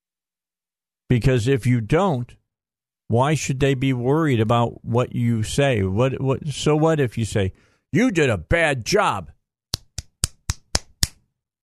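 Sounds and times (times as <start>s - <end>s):
speech: 1.1s - 2.4s, 3.1s - 9.4s
hand slapping on a surface: 9.7s - 11.2s.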